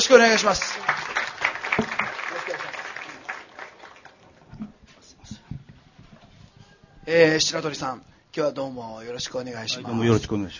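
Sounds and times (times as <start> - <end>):
audience applause at live event: 0.0 - 4.5
speech: 0.1 - 1.0, 7.1 - 10.5.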